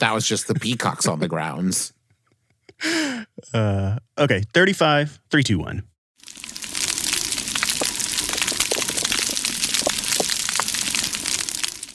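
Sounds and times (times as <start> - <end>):
speech: 0.0 - 2.0, 2.8 - 5.9
underwater coral reef crackling: 6.2 - 11.9.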